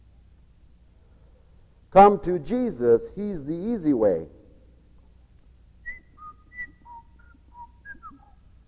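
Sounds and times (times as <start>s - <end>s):
speech: 1.9s - 4.4s
person whistling a meadowlark song: 5.8s - 8.6s.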